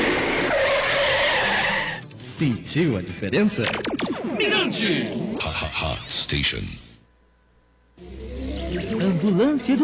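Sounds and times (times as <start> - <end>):
car brakes screeching: 0.2 - 2.0
speech: 2.4 - 6.8, 8.7 - 9.8.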